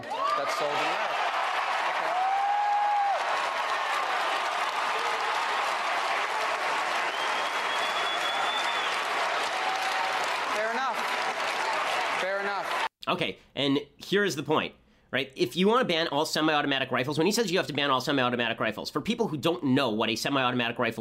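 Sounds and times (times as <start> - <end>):
large crowd applause: 0.0 - 12.9
sharp whistles: 7.1 - 9.0
speech: 13.1 - 20.9.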